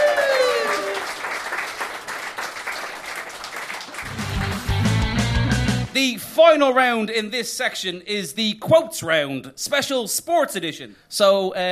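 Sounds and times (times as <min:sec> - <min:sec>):
audience applause: 0:00.0 - 0:05.4
speech: 0:06.0 - 0:11.7.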